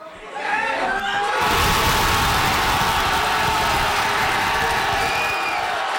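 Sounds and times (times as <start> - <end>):
crowd cheering and shouting at a pub watch party: 0.0 - 5.9.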